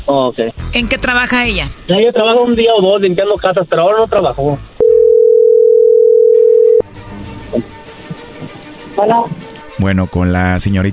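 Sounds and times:
speech: 0.1s - 4.8s, 7.5s - 7.7s, 9.0s - 10.9s
telephone ring tone on outgoing call: 4.8s - 6.8s.

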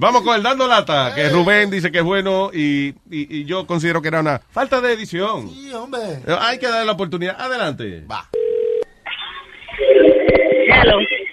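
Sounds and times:
speech: 0.0s - 8.4s, 10.7s - 11.2s
telephone tone: 8.4s - 8.9s, 9.8s - 11.3s.

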